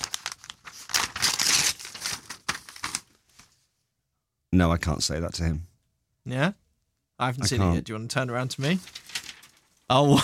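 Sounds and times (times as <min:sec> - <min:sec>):
paper envelope being torn open: 0:00.0 - 0:03.2, 0:08.6 - 0:09.7
speech: 0:04.6 - 0:05.7, 0:06.3 - 0:06.6, 0:07.2 - 0:09.0, 0:09.9 - 0:10.2.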